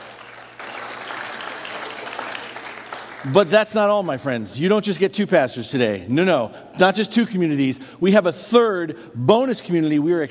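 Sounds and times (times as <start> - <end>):
church congregation applauding at a morning service: 0.0 - 4.1
speech: 3.2 - 10.3.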